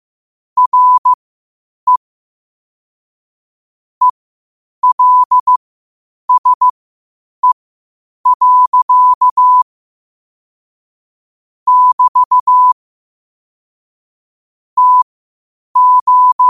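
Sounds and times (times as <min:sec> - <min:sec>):
morse code at 5 wpm: 0:00.6 - 0:01.2, 0:04.8 - 0:05.6, 0:06.3 - 0:06.7, 0:08.3 - 0:09.6, 0:11.7 - 0:12.8, 0:14.8 - 0:15.0, 0:15.8 - 0:16.4.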